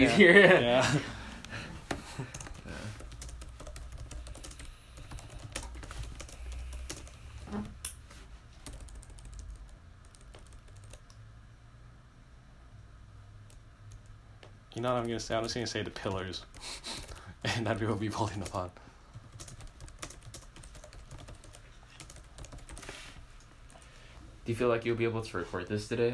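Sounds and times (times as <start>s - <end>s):
speech: 0.0s - 1.2s, 14.8s - 18.9s, 24.5s - 26.1s
typing on a computer keyboard: 2.2s - 7.2s, 8.6s - 11.2s, 14.8s - 17.3s, 18.2s - 22.9s.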